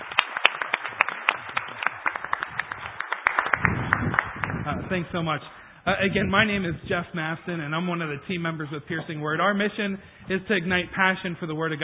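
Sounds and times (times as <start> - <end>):
audience applause: 0.0 - 5.3
speech: 4.9 - 11.8.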